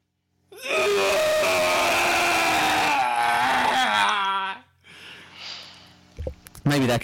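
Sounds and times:
person imitating retching with a guttural scream: 0.5 - 4.7
breathy rasping exhale: 4.8 - 6.0.

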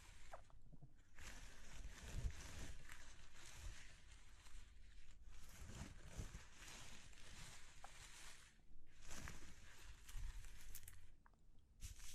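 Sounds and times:
textured crunching and rustling: 0.0 - 12.1.

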